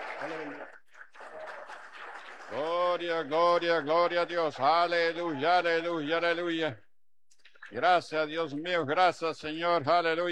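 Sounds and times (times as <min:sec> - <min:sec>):
audience applause: 0:00.0 - 0:05.8
speech: 0:00.2 - 0:00.8, 0:02.5 - 0:06.8, 0:07.7 - 0:10.3.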